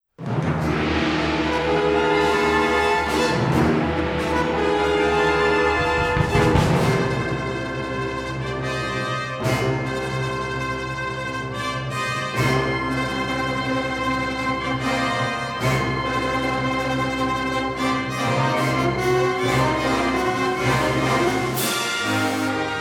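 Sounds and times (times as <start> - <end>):
fanfare: 0.7 - 22.7.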